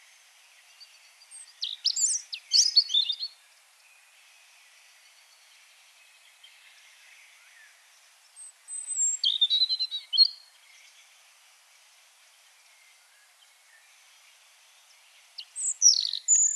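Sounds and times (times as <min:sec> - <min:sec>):
European robin song: 0:00.0 - 0:04.1, 0:04.8 - 0:11.1, 0:14.8 - 0:16.5.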